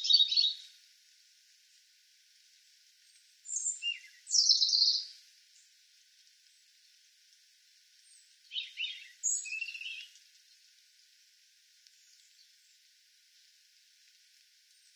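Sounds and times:
European robin singing: 0.0s - 0.7s, 3.1s - 5.2s, 8.0s - 10.2s
quiet hiss: 0.0s - 14.9s.

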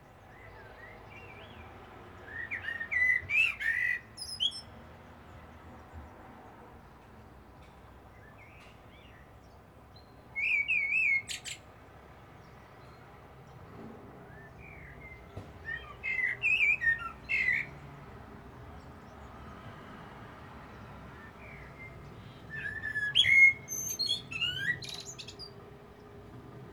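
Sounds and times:
common blackbird song: 0.0s - 6.3s, 7.6s - 11.8s, 12.4s - 18.0s, 20.7s - 26.2s.

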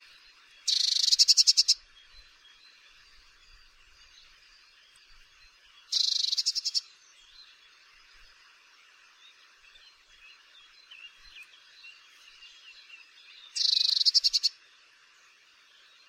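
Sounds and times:
faint birds twittering: 0.0s - 16.0s
Eurasian blue tit buzzy chattering: 0.7s - 1.8s, 5.9s - 6.8s.

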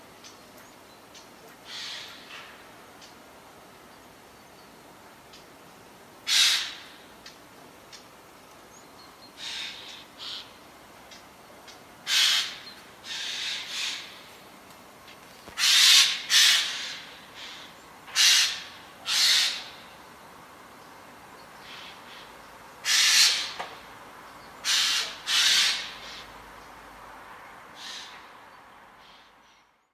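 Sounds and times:
Garrulus glandarius: 1.1s - 3.2s, 6.2s - 8.1s, 8.7s - 14.4s, 15.5s - 20.1s, 21.4s - 23.8s, 24.4s - 26.4s, 27.8s - 28.4s.

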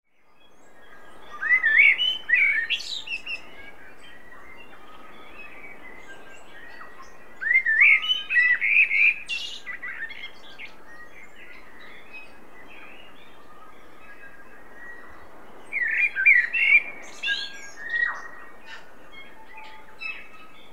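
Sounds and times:
faint hiss: 0.1s - 20.7s
common blackbird song: 0.2s - 20.7s.

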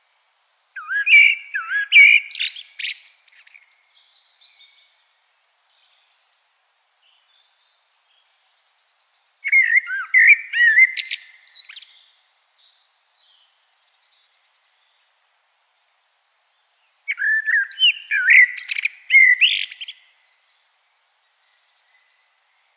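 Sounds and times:
common blackbird whistling song: 0.8s - 4.9s, 9.4s - 12.8s, 17.1s - 20.5s.

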